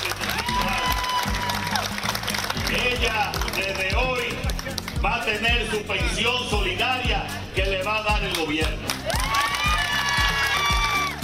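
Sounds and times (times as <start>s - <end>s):
audience applause: 0.0s - 5.0s, 8.9s - 11.2s
speech: 5.0s - 9.4s.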